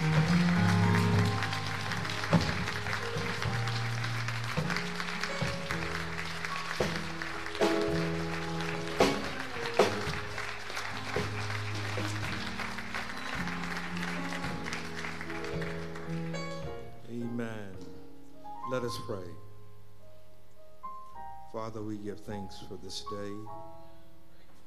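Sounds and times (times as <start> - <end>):
audience clapping: 0.0 - 16.9
low musical chords: 0.0 - 23.6
speech: 21.6 - 23.7.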